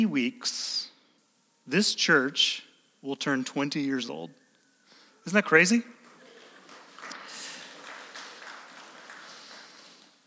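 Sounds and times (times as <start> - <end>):
speech: 0.0 - 0.9, 1.6 - 4.4, 5.2 - 6.0
weak round of applause: 5.9 - 10.2.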